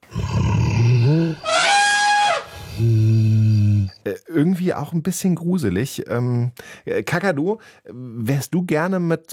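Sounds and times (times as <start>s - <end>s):
mammoth-like call similar to a deeper elephant: 0.1s - 3.6s
speech: 4.4s - 9.3s.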